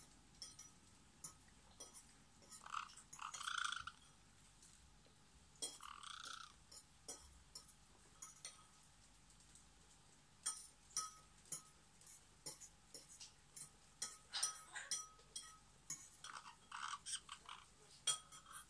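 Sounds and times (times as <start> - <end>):
parrot chattering with harsh squawks, clicks and short high whistles: 2.4 - 4.1, 5.6 - 6.7, 14.2 - 15.2, 16.1 - 18.6.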